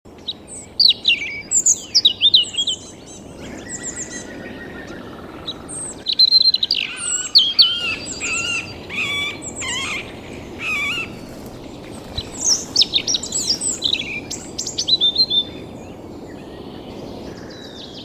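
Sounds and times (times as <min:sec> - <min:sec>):
European robin song: 0:00.1 - 0:18.0.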